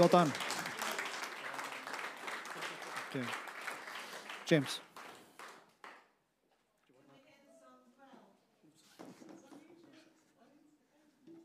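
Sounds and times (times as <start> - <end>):
speech: 0.0 - 0.4, 3.1 - 3.4, 4.5 - 4.9
audience applause: 0.0 - 6.0.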